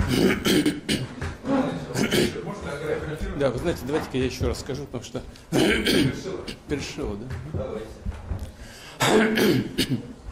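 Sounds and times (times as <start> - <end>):
man clearing his throat and stifling a cough: 0.0 - 1.2, 1.9 - 2.4, 5.5 - 6.6, 9.0 - 10.2
speech: 0.1 - 0.8, 3.1 - 8.1, 9.0 - 10.2.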